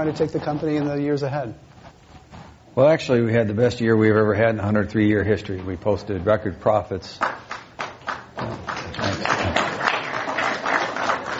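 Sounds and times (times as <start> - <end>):
speech: 0.0 - 1.7, 2.8 - 7.5
audience applause: 7.2 - 11.3.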